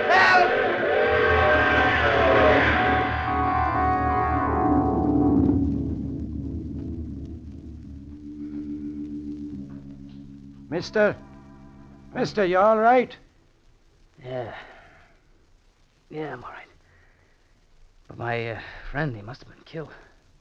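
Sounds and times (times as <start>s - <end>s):
train roaring through: 0.0s - 5.3s
speech: 10.8s - 11.3s, 12.2s - 13.2s, 14.2s - 14.7s, 16.1s - 16.7s, 18.1s - 20.1s.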